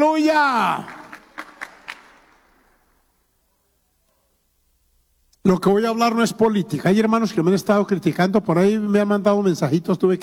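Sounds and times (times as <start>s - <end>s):
speech: 0.0s - 1.0s, 5.4s - 10.2s
audience applauding: 0.6s - 2.8s.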